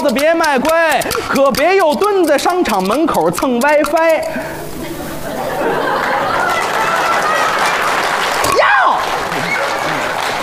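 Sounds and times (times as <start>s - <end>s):
speech: 0.0s - 4.6s
crowd chatter: 0.0s - 10.4s
laughter: 0.3s - 2.9s, 4.3s - 10.4s
live audience applause: 5.3s - 10.4s.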